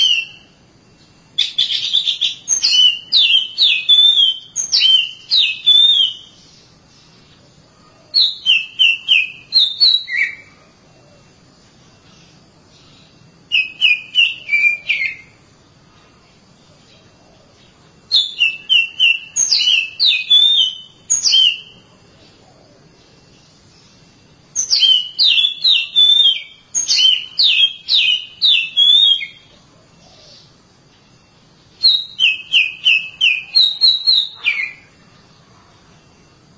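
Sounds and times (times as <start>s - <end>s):
Oriental magpie-robin whistled song: 0.0s - 0.6s, 1.3s - 6.7s, 8.1s - 10.6s, 12.7s - 15.4s, 18.0s - 21.9s, 23.7s - 35.0s.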